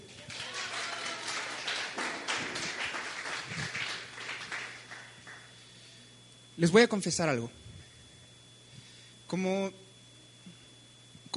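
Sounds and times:
low electrical hum: 0.0 - 11.3
audience applause: 0.1 - 5.5
speech: 6.6 - 7.6, 9.3 - 9.8.

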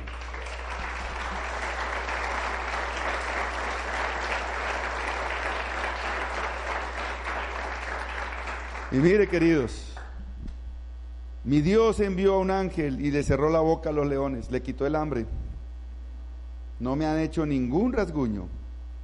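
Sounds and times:
audience applauding: 0.0 - 10.1
speech: 8.9 - 9.9, 11.4 - 15.4, 16.8 - 18.6.

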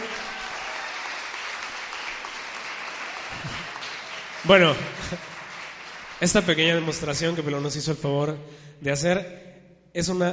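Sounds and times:
audience applause: 0.0 - 7.4
speech: 4.4 - 5.3, 6.2 - 10.3.

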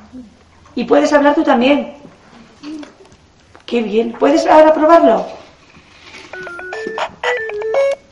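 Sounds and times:
speech: 0.1 - 2.0, 3.7 - 5.4
electronic music from a toy microphone: 6.3 - 8.1.

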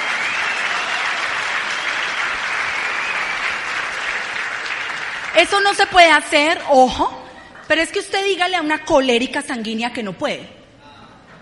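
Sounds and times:
crowd applause: 0.0 - 6.0
speech: 5.4 - 10.6.

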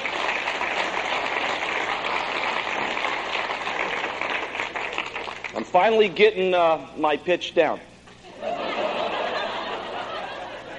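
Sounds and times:
audience applause: 0.0 - 5.6
speech: 5.7 - 7.9
laughter: 8.2 - 10.7.

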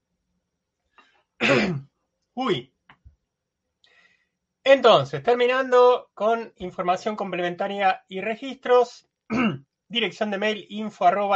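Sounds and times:
person clearing throat irritated by flour and crumbs: 1.4 - 1.8, 9.3 - 9.6
speech: 1.4 - 2.7, 4.7 - 11.3.

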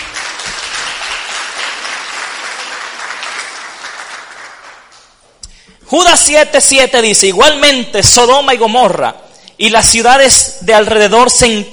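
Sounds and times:
audience applause: 0.0 - 5.0
speech: 5.9 - 11.7.

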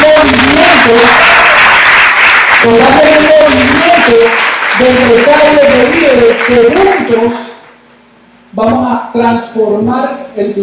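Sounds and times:
audience applause: 0.0 - 7.2
speech: 2.7 - 7.5, 8.6 - 10.6.

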